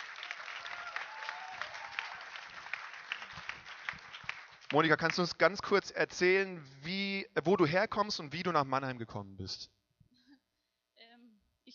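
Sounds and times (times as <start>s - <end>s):
audience applause: 0.0s - 5.7s
speech: 4.7s - 9.8s.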